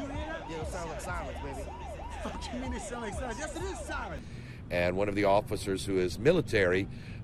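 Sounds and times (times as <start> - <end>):
old military siren with a muffled tone: 0.0 - 4.2
speech: 0.7 - 7.2.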